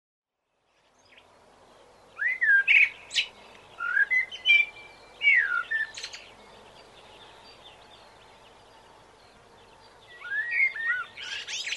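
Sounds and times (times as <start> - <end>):
common blackbird singing fluted whistles: 2.2 - 6.2, 10.1 - 11.7.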